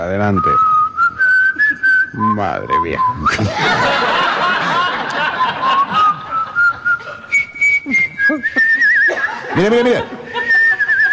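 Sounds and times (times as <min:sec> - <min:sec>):
speech: 0:00.1 - 0:00.8, 0:02.1 - 0:04.1, 0:09.6 - 0:10.1
person whistling a simple tune: 0:00.3 - 0:03.5, 0:05.7 - 0:09.3, 0:10.4 - 0:11.1
laughter: 0:03.3 - 0:07.3, 0:08.3 - 0:11.1.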